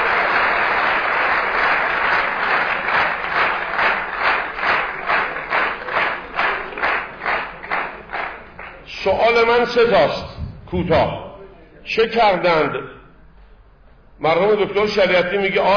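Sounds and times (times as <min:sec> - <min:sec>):
audience applause: 0:00.0 - 0:08.9
speech: 0:09.3 - 0:11.2, 0:11.8 - 0:13.0, 0:14.2 - 0:15.7.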